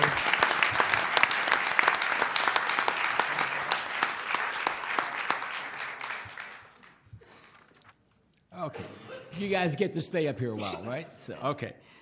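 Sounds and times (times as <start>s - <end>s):
audience applause: 0.0s - 7.0s
speech: 9.4s - 12.0s.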